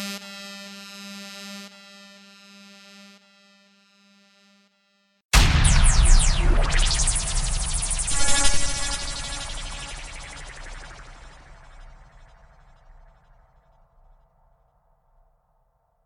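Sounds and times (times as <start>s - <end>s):
sound effects: 5.4s - 13.4s.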